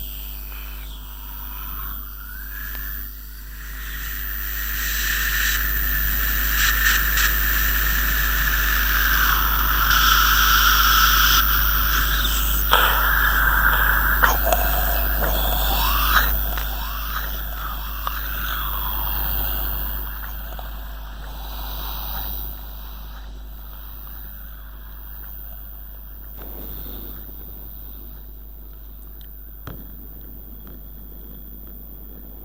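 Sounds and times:
zombie groaning: 0.4s - 24.6s.

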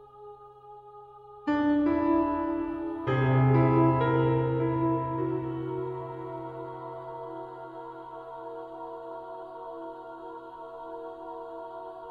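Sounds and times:
piano music for a scary moment: 1.5s - 9.4s.

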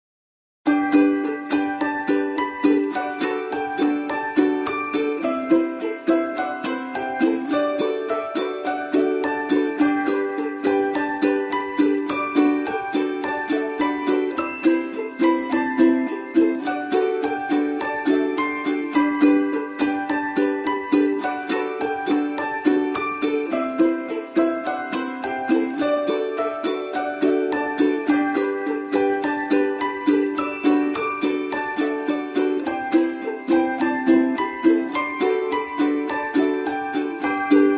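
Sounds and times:
beautiful Christmas music: 0.7s - 37.7s.

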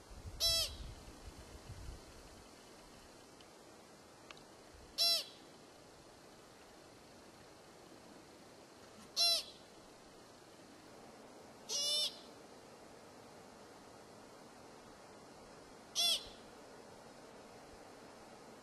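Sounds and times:
pika calling: 0.4s - 0.9s, 5.0s - 5.5s, 9.0s - 9.7s, 11.6s - 12.4s, 15.9s - 16.5s.

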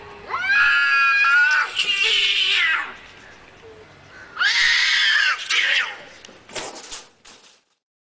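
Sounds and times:
cats fighting: 0.3s - 3.2s, 4.4s - 6.2s.

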